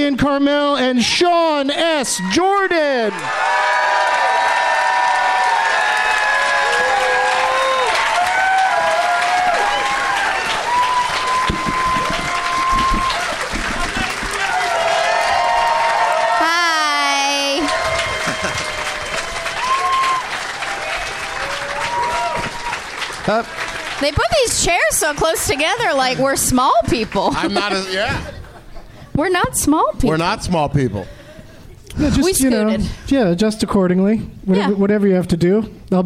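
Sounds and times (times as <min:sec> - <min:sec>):
speech: 0:00.0 - 0:03.8, 0:23.3 - 0:28.3, 0:29.2 - 0:31.2, 0:32.0 - 0:36.0
crowd cheering: 0:01.4 - 0:28.4
audience applause: 0:02.8 - 0:28.4
laughter: 0:18.1 - 0:19.0, 0:27.0 - 0:29.1.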